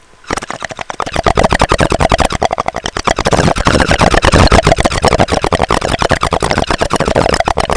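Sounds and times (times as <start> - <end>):
bubble: 0.2 - 7.7.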